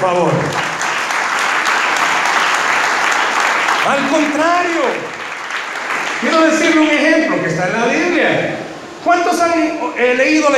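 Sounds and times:
speech: 0.0s - 0.6s, 3.9s - 5.2s, 6.2s - 10.5s
audience applause: 0.0s - 7.3s.

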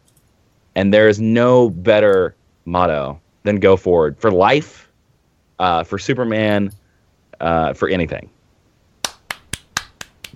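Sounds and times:
speech: 0.8s - 4.9s, 5.6s - 6.8s, 7.4s - 8.4s
crisp hand claps: 9.0s - 10.3s.

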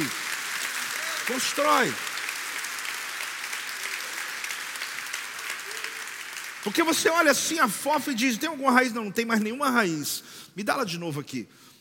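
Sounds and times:
audience applause: 0.0s - 7.4s
speech: 1.3s - 2.1s, 6.6s - 11.7s.

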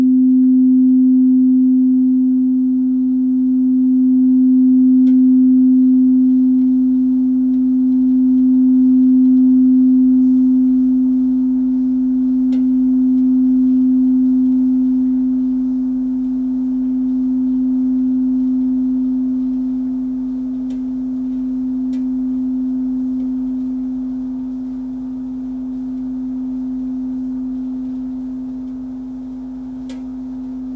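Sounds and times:
sound bath low bowl-like tone: 0.0s - 30.7s.

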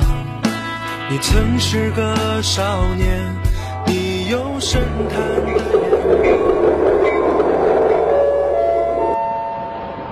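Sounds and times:
speech: 1.1s - 6.7s
train rumbling past sound effect: 3.5s - 10.1s.

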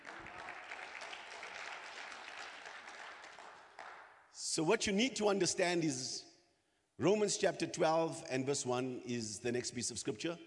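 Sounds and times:
audience clapping: 0.0s - 4.3s
speech: 4.5s - 6.2s, 7.0s - 10.4s.

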